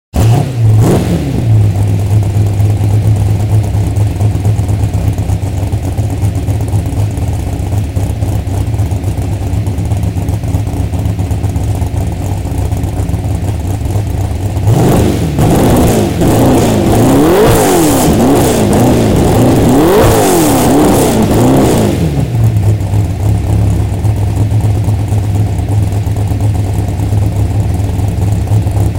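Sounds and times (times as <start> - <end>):
Ford 34 supergas engine: 0.1 - 28.9.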